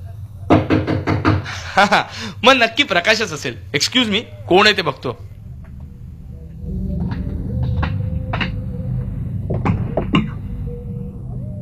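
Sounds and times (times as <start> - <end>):
faint steady hum: 0.0 - 11.5
knocking on a door: 0.5 - 1.5
speech: 1.8 - 5.3.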